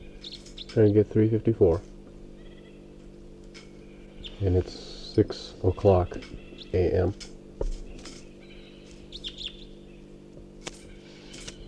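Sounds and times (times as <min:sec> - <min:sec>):
bird song: 0:00.0 - 0:01.4, 0:03.6 - 0:07.1, 0:07.8 - 0:11.6
speech: 0:00.7 - 0:01.9, 0:04.4 - 0:07.3.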